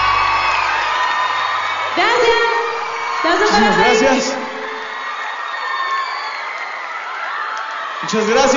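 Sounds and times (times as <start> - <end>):
audience applause: 0.0 - 8.5
speech: 3.2 - 4.4, 8.1 - 8.5.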